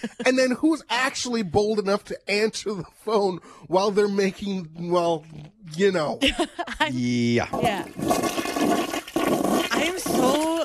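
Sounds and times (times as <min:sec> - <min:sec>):
speech: 0:00.0 - 0:08.9
toilet flushing: 0:07.8 - 0:10.6.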